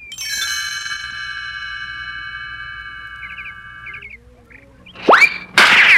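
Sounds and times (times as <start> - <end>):
chirps: 0.0 - 0.5, 1.7 - 5.5
sustained ringing musical tones in a cartoon game: 0.0 - 5.0.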